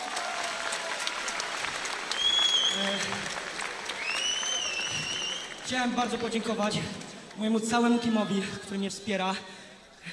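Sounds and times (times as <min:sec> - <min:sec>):
large audience applause: 0:00.0 - 0:07.4
high whistles: 0:02.1 - 0:02.8, 0:04.0 - 0:05.6
speech: 0:05.7 - 0:10.1.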